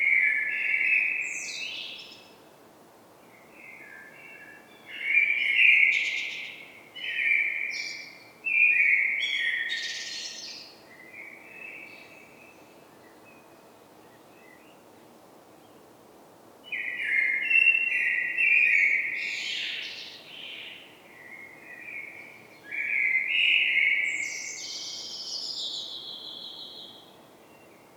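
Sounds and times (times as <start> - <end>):
common blackbird Turdus merula song with fluted whistled phrases: 0.1 - 2.4, 3.4 - 14.8, 16.7 - 27.9.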